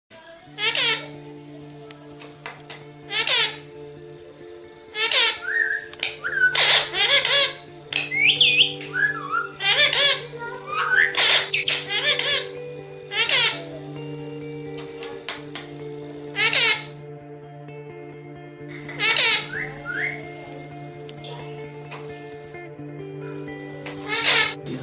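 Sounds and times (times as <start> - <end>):
parrot: 0.6 - 1.2, 3.1 - 3.6, 4.9 - 12.5, 13.1 - 13.8, 16.4 - 16.9, 18.7 - 20.2, 23.2 - 24.6.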